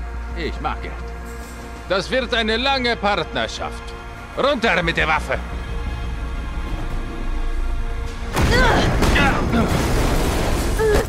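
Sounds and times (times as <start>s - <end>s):
speech: 0.4s - 1.2s, 1.9s - 5.6s, 9.2s - 9.9s
rumbling debris: 5.6s - 11.0s
wall exploding in a Resident Evil 3 audio drama: 8.3s - 11.0s.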